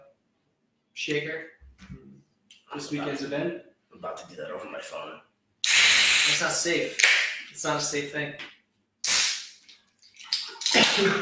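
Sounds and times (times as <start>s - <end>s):
speech: 1.0s - 2.0s, 2.7s - 5.3s, 6.3s - 8.6s, 11.0s - 11.2s
person coughing: 10.7s - 11.2s.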